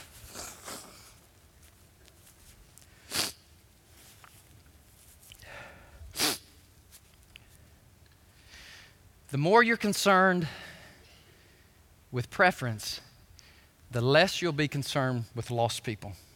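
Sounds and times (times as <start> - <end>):
nose blowing: 0.0 - 1.2, 3.0 - 3.5, 6.1 - 6.6
speech: 9.3 - 10.6, 12.1 - 13.1, 13.9 - 16.3.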